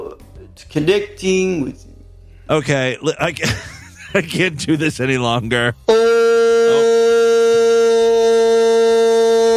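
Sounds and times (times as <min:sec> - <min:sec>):
speech: 0:00.7 - 0:01.9, 0:02.5 - 0:06.0
laughter: 0:03.3 - 0:04.8
long buzzy honk: 0:05.9 - 0:09.5.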